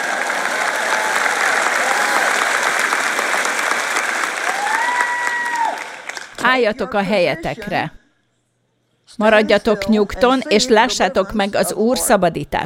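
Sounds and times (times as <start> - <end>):
audience applause: 0.0 - 6.4
speech: 6.5 - 8.0, 9.1 - 12.6.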